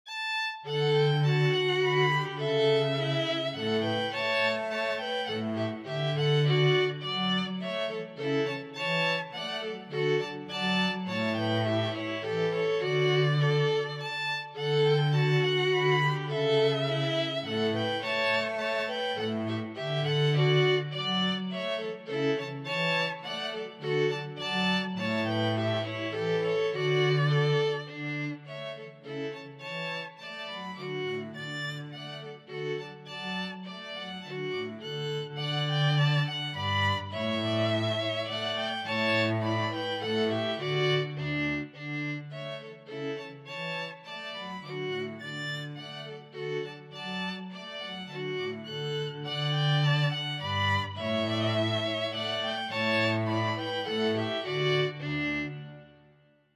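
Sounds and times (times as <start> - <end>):
dance in D for two violins and bass: 0.0 - 56.5.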